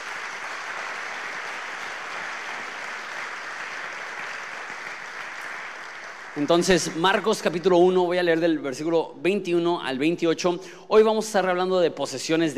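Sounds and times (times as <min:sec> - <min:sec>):
audience applauding: 0:00.0 - 0:08.0
speech: 0:06.4 - 0:12.5.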